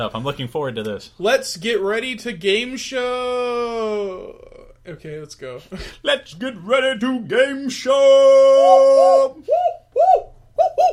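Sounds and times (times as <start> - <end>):
speech: 0.0 - 9.8
person making monkey hoots: 8.6 - 10.9.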